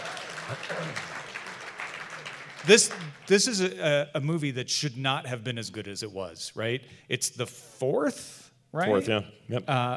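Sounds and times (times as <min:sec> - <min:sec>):
audience applause: 0:00.0 - 0:03.8
speech: 0:00.5 - 0:01.2, 0:02.6 - 0:09.9.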